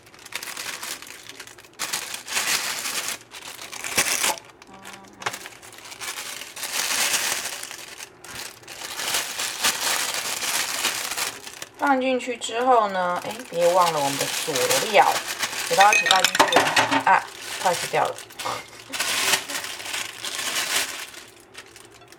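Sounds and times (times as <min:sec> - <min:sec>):
plastic bag crinkling as a chicken drumstick is pushed inside: 0:00.0 - 0:22.1
speech: 0:11.9 - 0:18.7.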